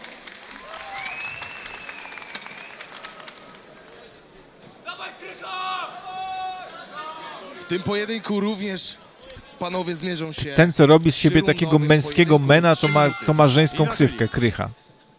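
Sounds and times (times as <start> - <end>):
applause for two fighters: 0.0 - 4.2
speech: 7.7 - 9.0, 9.6 - 14.8.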